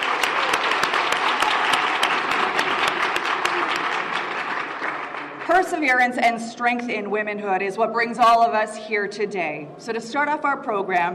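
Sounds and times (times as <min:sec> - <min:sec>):
audience round of applause: 0:00.0 - 0:05.8
speech: 0:05.5 - 0:11.1.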